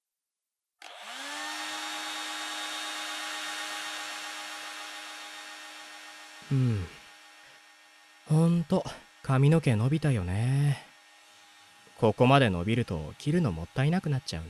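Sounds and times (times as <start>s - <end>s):
hair dryer blowing: 0.8s - 14.4s
speech: 6.5s - 7.0s, 8.6s - 10.9s, 12.0s - 14.4s.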